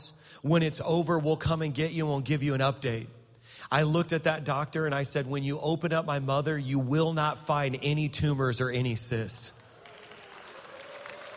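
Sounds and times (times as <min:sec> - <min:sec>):
speech: 0:00.4 - 0:09.6
audience clapping: 0:09.6 - 0:11.3.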